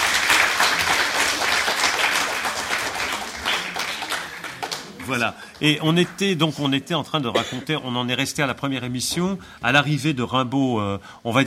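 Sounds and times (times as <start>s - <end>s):
audience applauding: 0.0s - 6.7s
speech: 5.1s - 11.4s.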